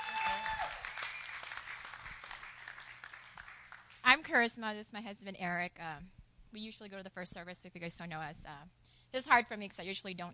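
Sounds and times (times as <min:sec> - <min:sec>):
audience applause: 0:00.0 - 0:04.0
speech: 0:04.2 - 0:10.3.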